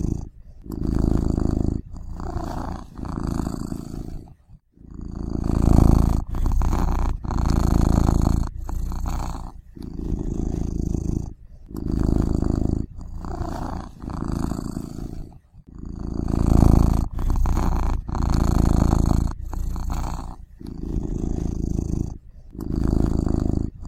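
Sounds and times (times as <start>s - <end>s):
cat purring: 0.0s - 23.8s.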